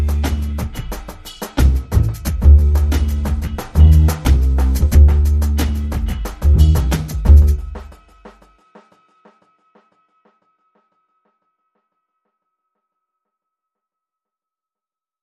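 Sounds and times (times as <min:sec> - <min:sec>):
dark jazz bass: 0:00.0 - 0:00.8, 0:01.6 - 0:07.8.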